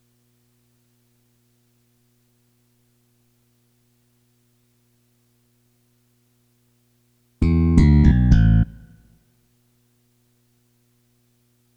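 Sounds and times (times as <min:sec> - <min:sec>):
bass: 0:07.4 - 0:09.0.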